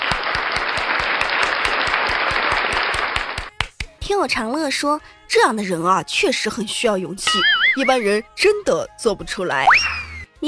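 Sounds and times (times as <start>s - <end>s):
crowd applauding: 0.0s - 3.5s
speech: 4.1s - 10.0s.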